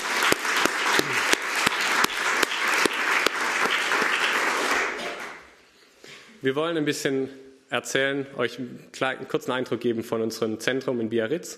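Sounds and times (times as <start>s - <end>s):
audience applause: 0.0s - 5.5s
speech: 6.4s - 11.5s.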